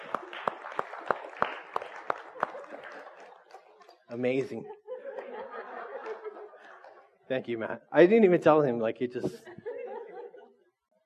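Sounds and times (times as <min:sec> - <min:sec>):
applause: 0:00.0 - 0:04.4
laughter: 0:02.2 - 0:07.3, 0:09.2 - 0:10.7
speech: 0:04.1 - 0:04.8, 0:07.3 - 0:09.5.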